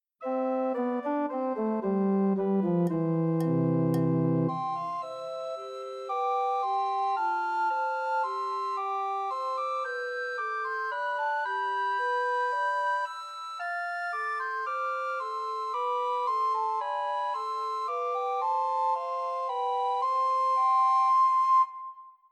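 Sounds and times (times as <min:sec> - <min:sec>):
two descant and one treble recorder playing Christmas trios: 0:00.2 - 0:21.6.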